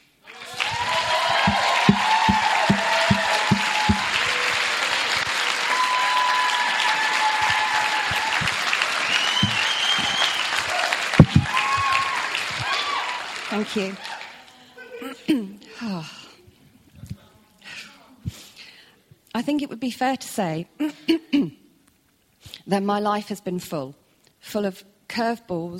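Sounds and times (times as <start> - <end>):
audience applause: 0.2 - 14.7
speech: 13.7 - 14.1, 19.4 - 21.6, 22.7 - 25.7.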